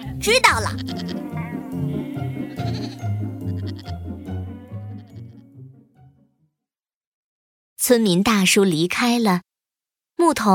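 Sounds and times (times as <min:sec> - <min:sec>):
speech: 0:00.2 - 0:01.9, 0:07.9 - 0:09.5, 0:10.2 - 0:10.5
sheep bleating: 0:00.4 - 0:05.5.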